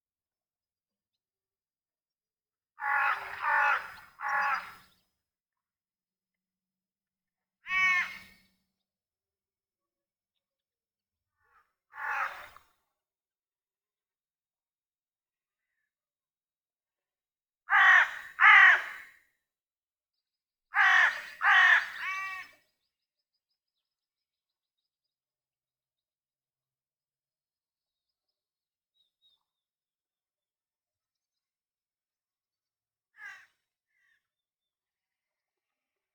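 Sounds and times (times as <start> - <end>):
crows: 2.8 - 5.0, 7.6 - 8.5, 11.4 - 12.8, 17.7 - 19.2, 20.8 - 22.6, 33.2 - 34.3.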